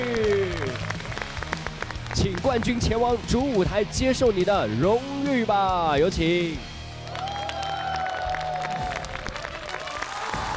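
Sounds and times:
audience applause: 0.0 - 2.8, 7.0 - 10.5
speech: 2.2 - 6.7.

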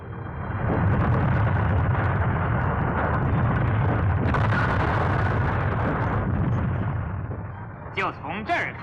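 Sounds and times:
loud explosion with deep rumbling roar: 0.0 - 8.2
speech: 8.0 - 8.8.

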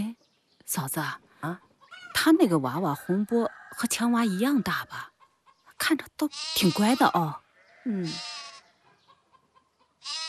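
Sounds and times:
speech: 0.7 - 5.1, 5.8 - 8.5
young sheep bleating: 6.2 - 8.8, 10.0 - 10.2.

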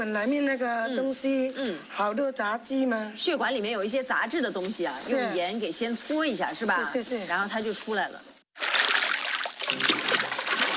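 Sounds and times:
speech: 0.0 - 8.3
running water splashing as salt-rubbed beef lung is rinsed: 8.6 - 10.7.

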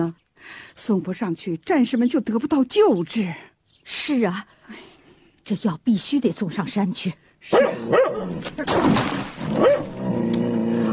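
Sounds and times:
speech: 0.0 - 4.9, 5.5 - 10.4
yellow-eyed dog barking and yelping in a dramatized scene: 7.5 - 8.4, 9.6 - 10.0.

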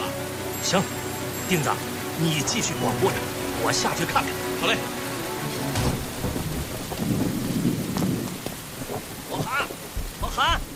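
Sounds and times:
heavy rain: 0.0 - 10.7
speech: 0.7 - 5.0
deep thunder rumbling: 2.4 - 10.7.

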